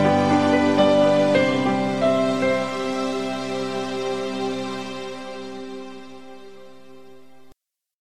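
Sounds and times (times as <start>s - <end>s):
piano piece: 0.0s - 7.5s.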